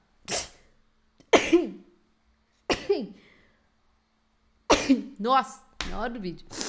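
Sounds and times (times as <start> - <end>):
person sneezing: 0.2 - 1.9, 4.7 - 5.1
speech: 4.9 - 6.6.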